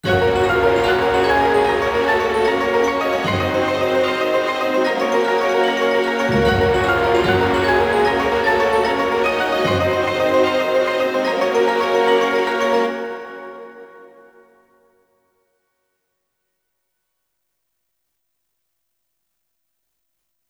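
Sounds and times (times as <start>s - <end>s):
victory jingle: 0.0s - 13.4s.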